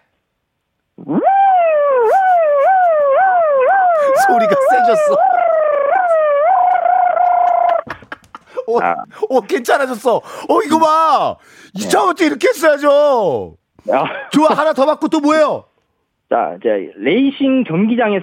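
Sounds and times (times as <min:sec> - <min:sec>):
voice imitating a tow truck siren: 0:01.0 - 0:07.8
laughter: 0:04.1 - 0:09.7
speech: 0:04.9 - 0:05.3, 0:08.7 - 0:15.7, 0:16.3 - 0:18.2.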